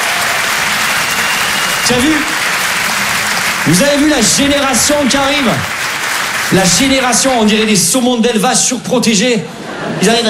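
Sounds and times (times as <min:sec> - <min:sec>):
brief cheer: 0:00.0 - 0:03.6
audience applause: 0:00.0 - 0:08.0
speech: 0:01.9 - 0:02.4, 0:03.6 - 0:05.8, 0:06.5 - 0:10.2.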